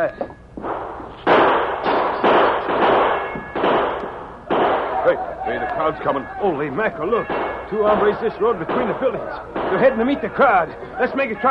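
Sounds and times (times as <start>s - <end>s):
speech: 0.0s - 0.2s, 5.1s - 11.4s
gunshots: 0.6s - 5.2s, 7.1s - 10.3s.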